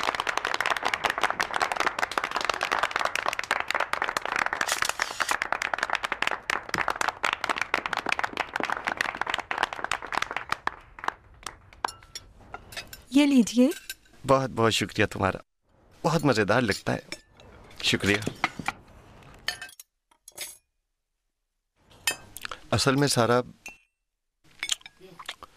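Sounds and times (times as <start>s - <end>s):
audience clapping: 0.0s - 12.0s
speech: 13.2s - 17.1s, 17.8s - 18.5s, 22.8s - 23.6s.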